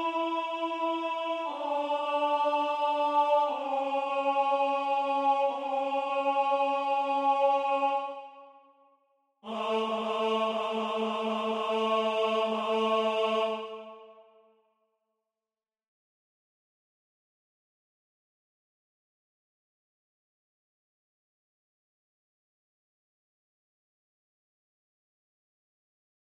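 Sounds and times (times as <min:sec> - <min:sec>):
tenor singing: 0:00.0 - 0:08.5, 0:09.4 - 0:14.1.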